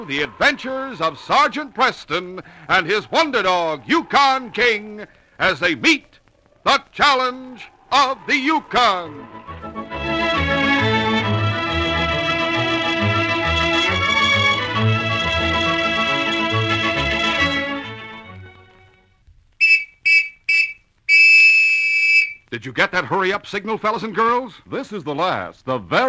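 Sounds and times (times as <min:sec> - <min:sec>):
speech: 0:00.0 - 0:09.6, 0:22.5 - 0:26.0
orchestral music: 0:08.0 - 0:19.0
police whistle blowing: 0:19.6 - 0:22.5.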